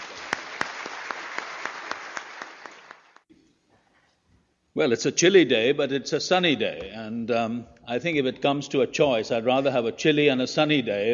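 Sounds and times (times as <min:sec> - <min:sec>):
audience applause at Westminster Chapel welcoming a visiting bishop: 0:00.0 - 0:03.2
speech: 0:04.8 - 0:11.1.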